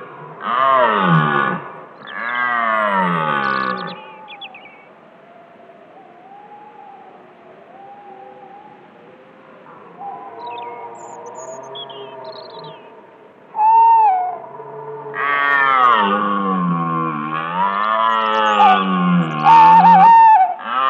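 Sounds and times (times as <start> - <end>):
red deer roaring: 0.0 - 4.0, 9.6 - 20.8.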